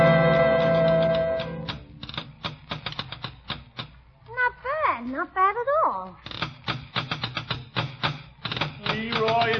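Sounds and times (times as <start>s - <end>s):
hands drumming on a tabletop: 0.1s - 4.0s, 6.3s - 9.5s
voice: 4.3s - 6.2s, 8.8s - 9.5s.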